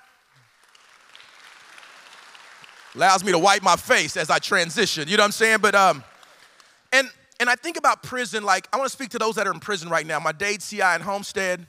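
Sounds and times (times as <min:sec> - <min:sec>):
audience clapping: 0:00.0 - 0:06.9
speech: 0:02.9 - 0:06.1, 0:07.0 - 0:11.6.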